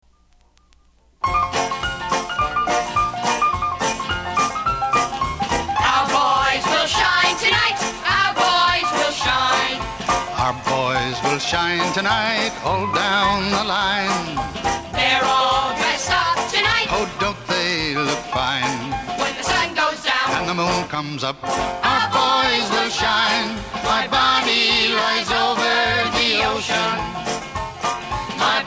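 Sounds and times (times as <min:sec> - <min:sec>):
campfire music medley: 0:00.0 - 0:28.6.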